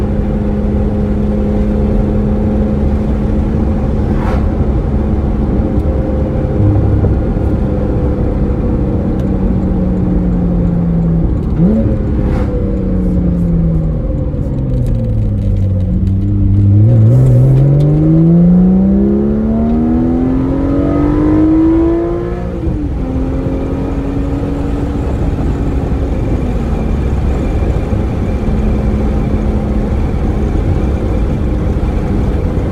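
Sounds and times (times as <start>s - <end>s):
sports car valved exhaust with stock and aftermarket overpipes: 0.0s - 32.6s.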